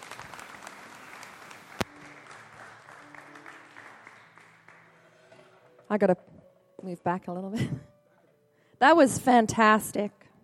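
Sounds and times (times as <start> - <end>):
audience clapping: 0.0 - 5.4
speech: 5.9 - 7.9, 8.8 - 10.3.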